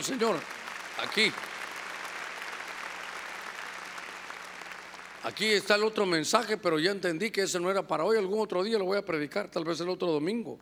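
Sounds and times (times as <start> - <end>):
speech: 0.0 - 1.5, 5.2 - 10.6
audience clapping hands loudly: 0.0 - 5.8.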